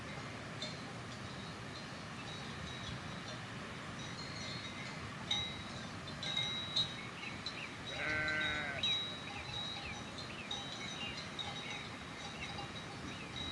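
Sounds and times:
bells clinking and ringing: 0.0s - 13.5s
sheep bleating: 7.9s - 8.8s.

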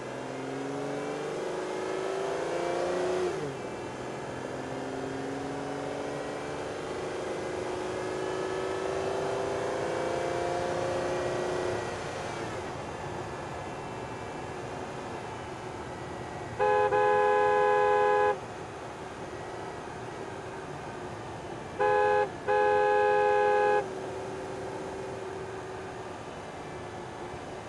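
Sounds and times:
Aston Martin DB9 driving and reversing: 0.0s - 27.6s
Aston Martin DB9 horn: 16.6s - 18.4s, 21.8s - 24.0s.

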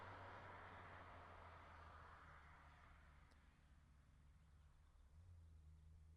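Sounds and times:
Saab 99 t9 passing by: 0.0s - 6.0s.

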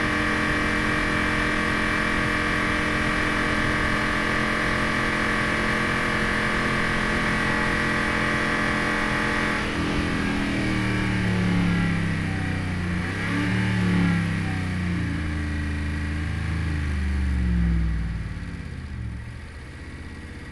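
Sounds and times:
Dodge Ram engine starting and driving at steady rpms, onboard: 0.0s - 20.4s.

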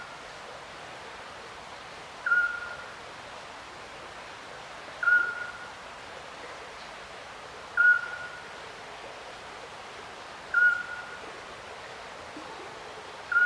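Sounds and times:
river flowing at night: 0.0s - 13.4s
distant little owl calling at night: 2.2s - 3.0s, 5.0s - 5.7s, 7.8s - 8.5s, 10.5s - 11.3s.

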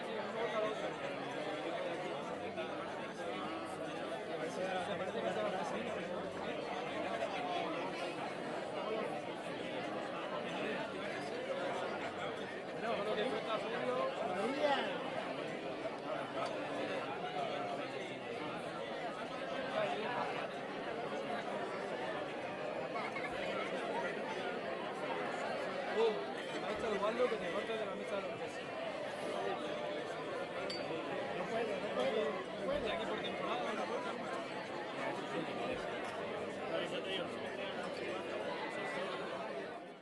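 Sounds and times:
wedding crowd at an open bar at a wedding banquet: 0.0s - 40.0s.

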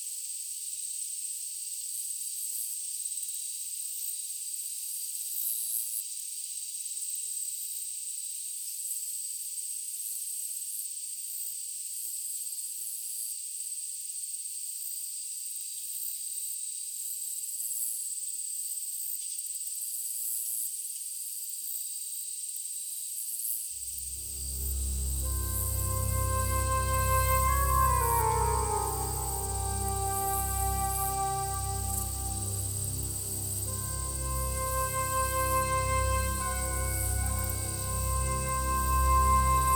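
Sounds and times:
grassland ambience in daytime: 24.2s - 39.7s.

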